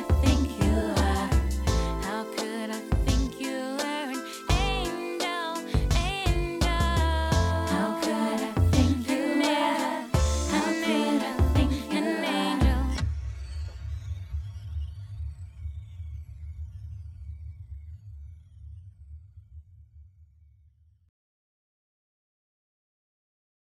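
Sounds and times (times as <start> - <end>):
unequalized music mixdown: 0.0 - 16.9.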